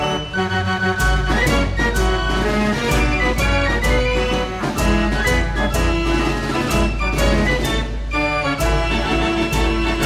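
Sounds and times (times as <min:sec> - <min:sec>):
fair organ playing a bright busy tune: 0:00.0 - 0:10.0.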